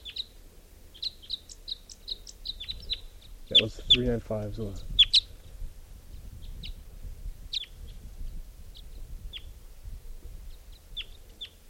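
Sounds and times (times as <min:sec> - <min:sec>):
wild bird calling: 0:00.0 - 0:04.2, 0:04.8 - 0:05.6, 0:07.5 - 0:08.0, 0:10.5 - 0:11.6
speech: 0:03.5 - 0:04.9.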